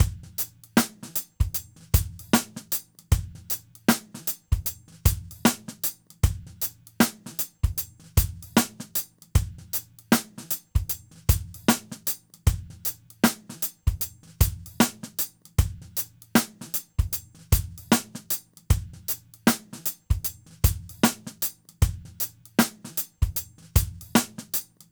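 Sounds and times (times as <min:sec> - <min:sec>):
drums: 0:00.0 - 0:24.9.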